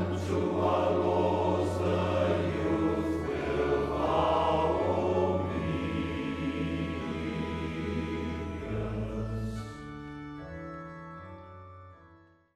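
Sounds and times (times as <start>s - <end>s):
male choir of priests singing: 0.0s - 9.9s.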